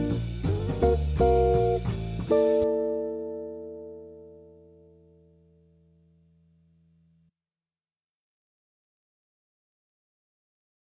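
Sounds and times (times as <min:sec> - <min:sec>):
backing music: 0:00.0 - 0:04.8.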